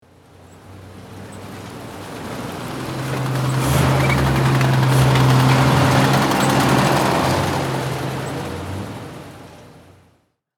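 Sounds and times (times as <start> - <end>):
tank passing by: 0.1 - 10.2
tank tracks rolling: 1.8 - 8.5.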